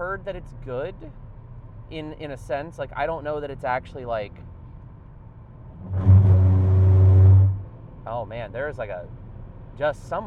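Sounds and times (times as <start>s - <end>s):
speech: 0.0s - 1.3s, 1.9s - 4.5s, 8.0s - 9.2s, 9.8s - 10.2s
car tires driving over rumble strips: 4.4s - 9.8s.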